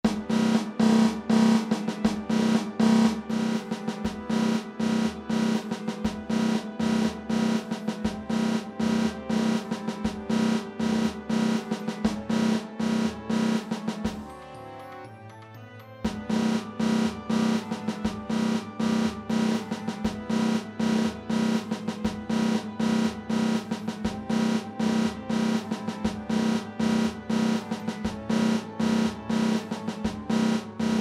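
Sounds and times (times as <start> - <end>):
snare drum: 0.0 - 14.2, 16.1 - 31.0.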